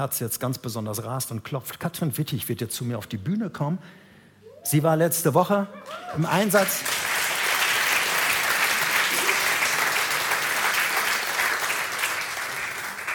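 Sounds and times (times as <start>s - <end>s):
speech: 0.0s - 7.1s
large audience applause: 5.8s - 13.1s.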